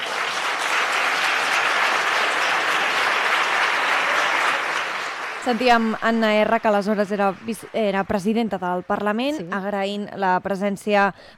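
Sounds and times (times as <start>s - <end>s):
parliament chamber ovation applause: 0.0s - 9.3s
speech: 5.5s - 11.3s.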